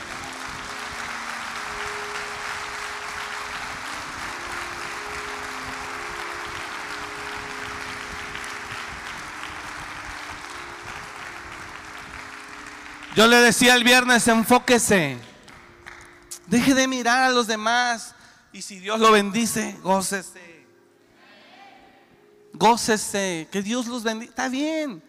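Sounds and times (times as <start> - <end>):
audience applause: 0.0 - 13.9
speech: 13.2 - 15.3, 16.5 - 20.5, 22.6 - 25.0.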